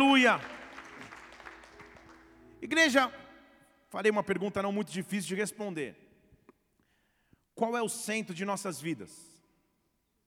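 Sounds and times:
speech: 0.0 - 0.6, 2.6 - 3.2, 3.9 - 6.0, 7.6 - 9.3
audience applauding: 0.0 - 3.0.

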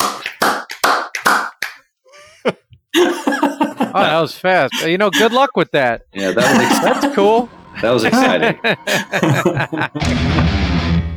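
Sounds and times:
group clapping on a count of three: 0.0 - 1.9
laughter: 2.1 - 5.6, 6.2 - 10.6
speech: 3.9 - 10.6.

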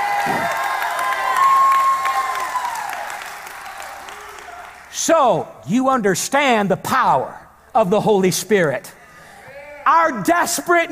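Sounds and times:
audience clapping: 0.0 - 4.9
speech: 5.0 - 9.0, 9.8 - 10.9.

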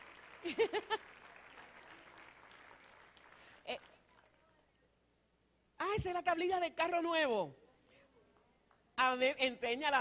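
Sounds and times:
audience applause for birthday celebrants: 0.0 - 3.6
speech: 0.4 - 1.2, 6.0 - 7.6, 9.0 - 9.9.

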